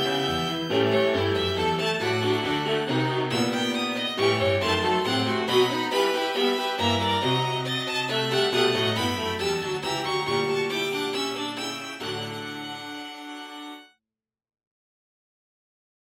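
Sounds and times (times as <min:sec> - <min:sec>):
fugue for two violins, viola and cello: 0:00.0 - 0:13.9.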